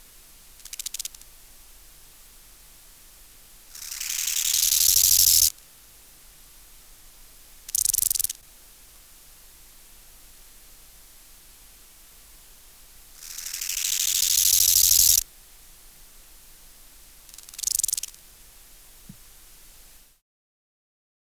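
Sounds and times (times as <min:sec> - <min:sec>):
bow-winged grasshopper stridulation: 0:00.6 - 0:01.2, 0:03.7 - 0:05.5, 0:07.7 - 0:08.4, 0:13.2 - 0:15.2, 0:17.3 - 0:18.3.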